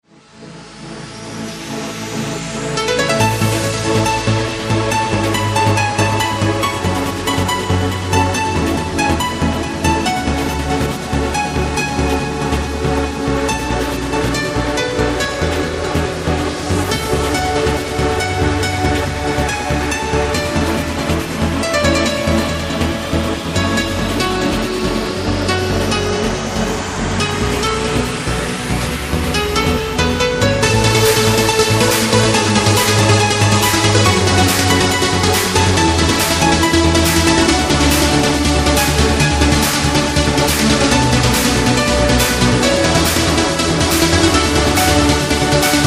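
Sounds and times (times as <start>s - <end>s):
trance piano sonata: 0.1s - 45.8s.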